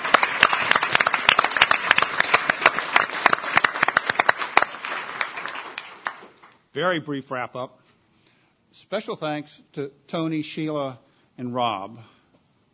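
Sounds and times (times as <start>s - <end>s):
audience applause: 0.0s - 6.6s
speech: 6.8s - 7.8s, 8.8s - 12.2s.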